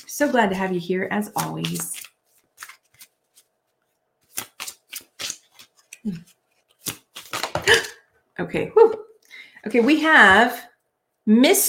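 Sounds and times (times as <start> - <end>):
speech: 0.0 - 2.0, 6.0 - 6.3, 7.7 - 11.6
tarot cards shuffling: 1.2 - 7.7.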